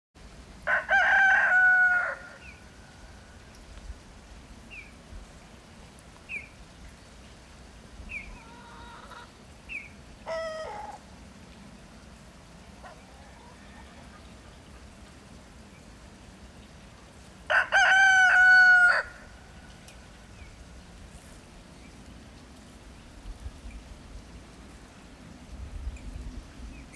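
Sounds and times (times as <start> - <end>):
rooster crowing: 0.7 - 2.4, 13.2 - 14.2, 17.5 - 19.4.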